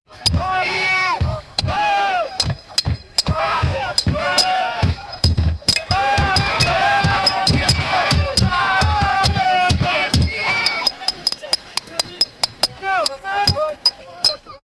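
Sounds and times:
drums: 0.1s - 14.5s.

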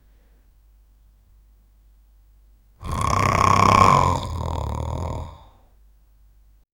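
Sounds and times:
person snoring in sleep: 2.8s - 5.6s.

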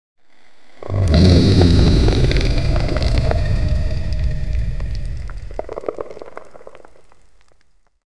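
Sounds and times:
flaming wolf roaring: 0.8s - 5.8s.

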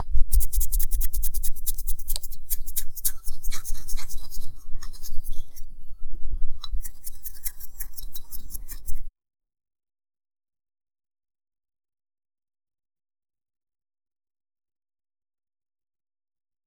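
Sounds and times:
comb brushing through hair: 0.3s - 5.6s, 6.7s - 9.1s.

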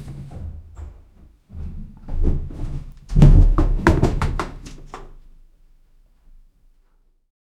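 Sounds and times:
man rolling down: 1.7s - 4.9s.

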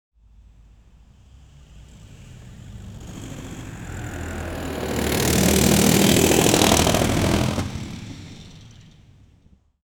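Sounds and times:
rickshaw out of control: 2.0s - 9.5s.

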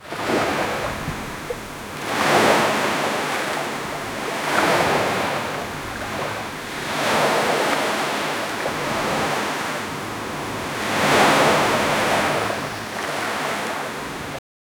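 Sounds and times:
calm sea: 0.0s - 14.4s.

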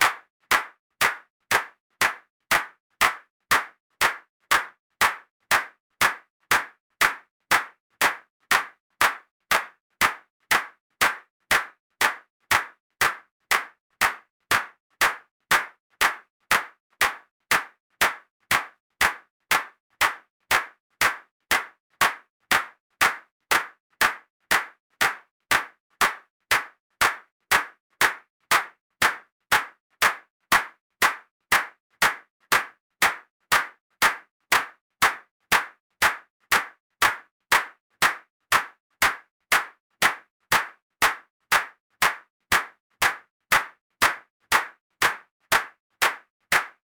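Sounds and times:
rhythmic percussive clap: 0.0s - 46.8s.

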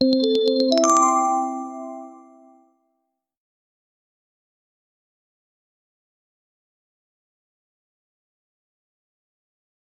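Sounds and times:
short positive sound effect: 0.0s - 2.6s.

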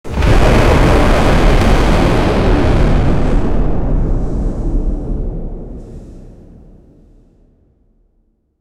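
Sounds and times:
scary hellish ambience: 0.0s - 7.2s
volcano: 0.0s - 7.3s.

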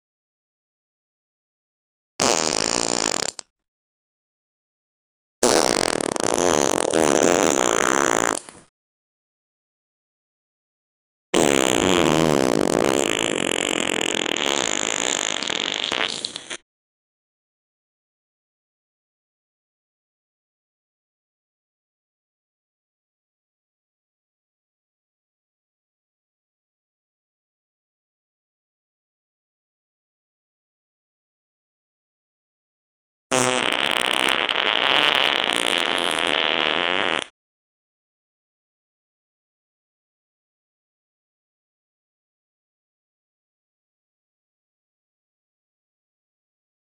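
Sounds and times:
fart: 2.2s - 3.5s, 5.4s - 8.7s, 11.4s - 16.6s, 33.3s - 37.4s.

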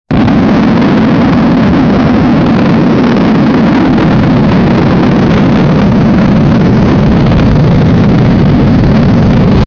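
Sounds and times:
rocket leaving the base: 0.1s - 9.6s.

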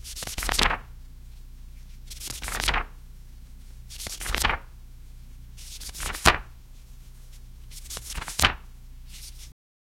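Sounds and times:
paper book pages flipping: 0.1s - 0.8s, 2.0s - 2.9s, 3.9s - 4.6s, 5.6s - 6.4s, 7.7s - 9.5s.

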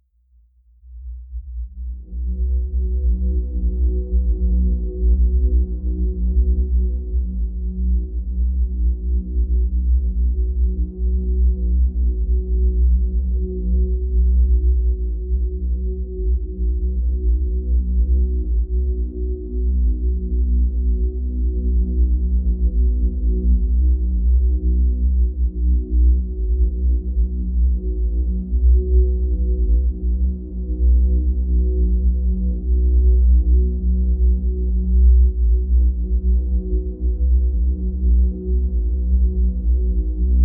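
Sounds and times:
brooding ambient score: 1.6s - 40.4s.

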